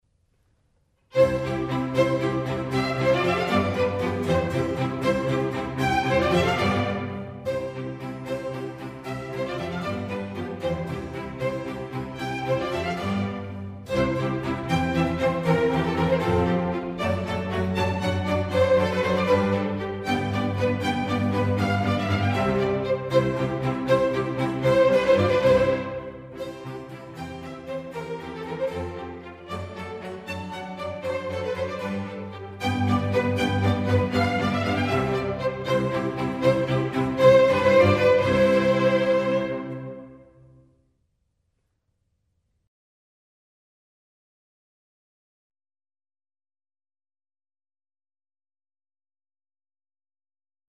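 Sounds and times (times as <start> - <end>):
string orchestra sinfonia in C major: 1.1 - 40.6.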